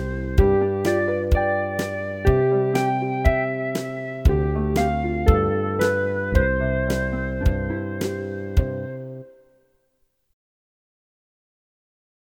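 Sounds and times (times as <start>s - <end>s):
instrumental backing track: 0.0s - 9.3s.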